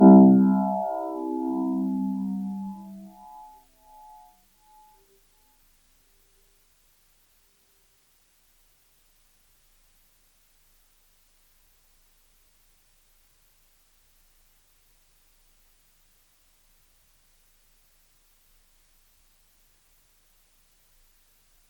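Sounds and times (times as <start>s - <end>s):
sustained Kawai grand piano note C1: 0.0s - 4.2s.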